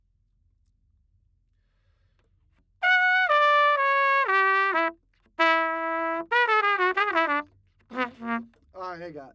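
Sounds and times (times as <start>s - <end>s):
trumpet: 2.8s - 8.6s.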